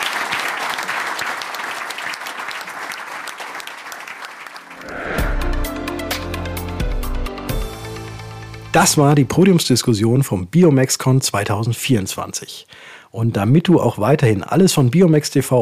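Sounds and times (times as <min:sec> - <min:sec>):
audience applause: 0:00.0 - 0:05.5
speech: 0:08.8 - 0:15.6.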